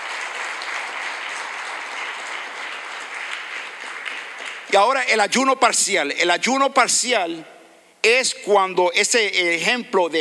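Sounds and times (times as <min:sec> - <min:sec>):
crowd applauding loudly: 0:00.0 - 0:05.0
speech: 0:04.7 - 0:10.1.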